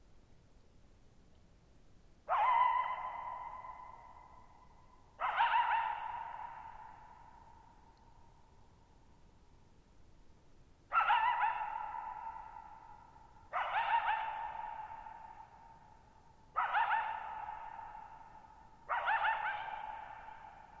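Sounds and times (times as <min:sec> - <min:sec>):
coyote barking: 0:02.3 - 0:04.5, 0:05.2 - 0:07.4, 0:10.9 - 0:15.7, 0:16.5 - 0:20.7.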